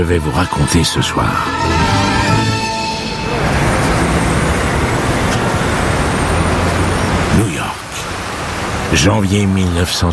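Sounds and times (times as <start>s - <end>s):
speech: 0.0s - 2.2s, 8.9s - 10.1s
New York city street traffic: 0.0s - 10.1s
distant police car sirens in New York: 1.2s - 9.1s.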